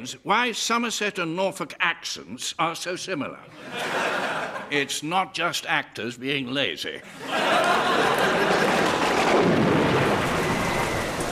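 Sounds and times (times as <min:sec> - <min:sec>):
speech: 0:00.0 - 0:07.4
laughter: 0:03.5 - 0:04.9, 0:07.0 - 0:09.3
thunder rumble: 0:08.5 - 0:11.3
heavy rain: 0:08.6 - 0:11.3.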